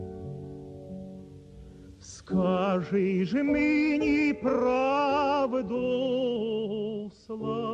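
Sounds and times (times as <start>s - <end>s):
Ukrainian tenor singing a Ukrainian song: 2.0s - 7.7s.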